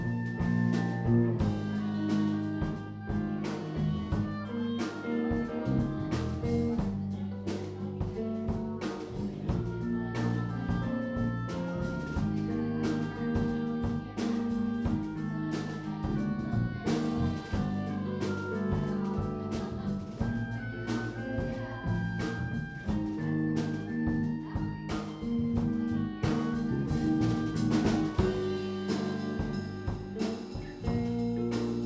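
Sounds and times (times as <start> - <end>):
oboe: 0.0 - 31.8.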